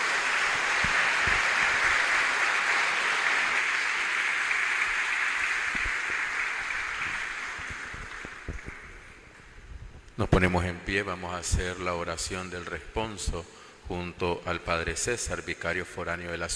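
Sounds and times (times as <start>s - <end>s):
applause: 0.0s - 9.4s
speech: 10.2s - 16.5s.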